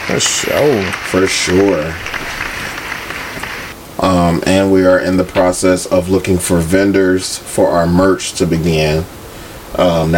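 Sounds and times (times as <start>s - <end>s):
crowd applause: 0.0s - 3.7s
speech: 0.1s - 2.4s, 4.0s - 10.1s.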